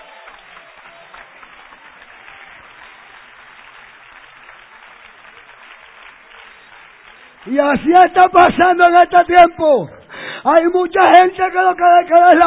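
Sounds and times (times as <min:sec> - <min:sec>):
audience applause: 0:00.0 - 0:08.9
speech: 0:07.4 - 0:12.4.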